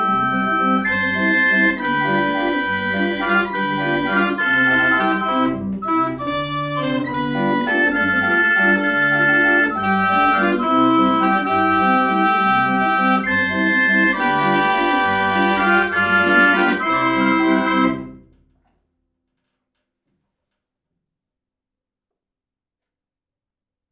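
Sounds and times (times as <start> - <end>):
melody on a sample cylinder recording: 0.0 - 18.4.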